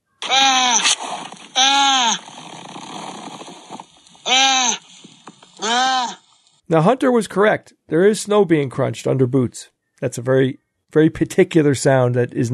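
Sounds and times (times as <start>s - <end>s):
seal begging for food: 0.2s - 6.3s
speech: 5.6s - 12.5s.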